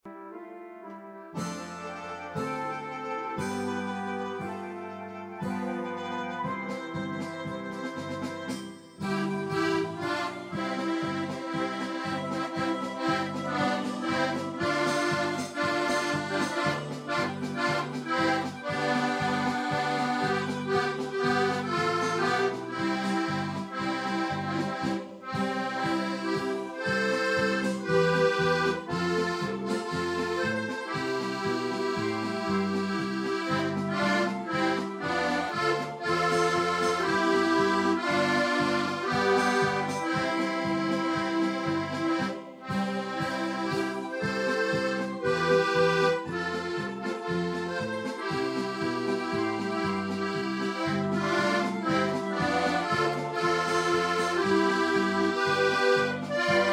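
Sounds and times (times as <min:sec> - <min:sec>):
keyboard: 0:00.0 - 0:56.7.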